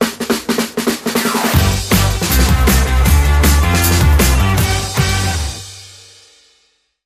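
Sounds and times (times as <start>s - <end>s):
music sting: 1.2s - 5.9s.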